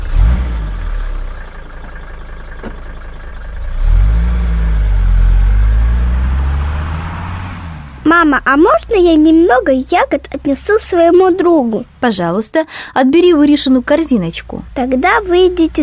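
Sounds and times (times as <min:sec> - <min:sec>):
car engine revving, idling and pulling away: 0:00.0 - 0:11.2
speech: 0:08.1 - 0:15.8.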